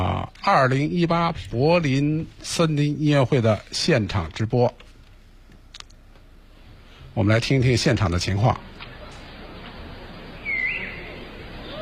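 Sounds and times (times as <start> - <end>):
speech: 0.0 - 4.8, 7.2 - 8.7
bird call at the 2018 Berlin forest concert: 10.4 - 11.8.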